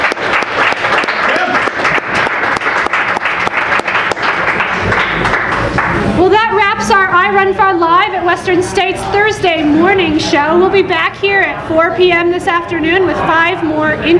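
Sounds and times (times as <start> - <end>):
audience applause: 0.0 - 6.1
speech: 7.3 - 14.1.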